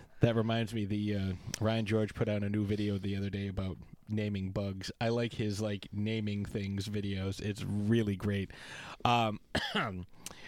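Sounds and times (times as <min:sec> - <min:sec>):
speech: 0:00.2 - 0:10.4
person coughing: 0:09.5 - 0:10.0.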